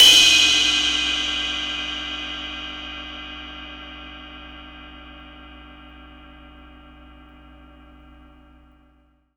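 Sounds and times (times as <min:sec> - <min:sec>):
impact drum hits: 0:00.0 - 0:02.7
cymbal hit: 0:00.0 - 0:04.9.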